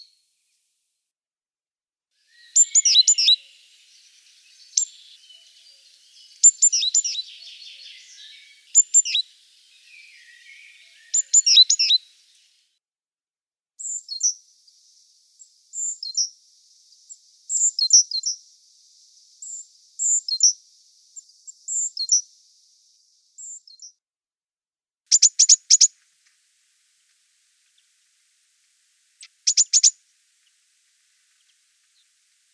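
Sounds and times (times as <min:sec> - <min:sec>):
great tit calling: 0:02.2 - 0:12.3, 0:29.2 - 0:30.5.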